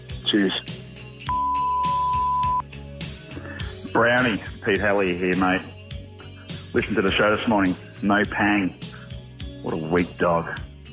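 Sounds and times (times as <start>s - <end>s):
speech: 0.3s - 0.8s, 4.0s - 5.7s, 6.7s - 8.8s, 9.6s - 10.6s
voicemail beep: 1.3s - 2.7s.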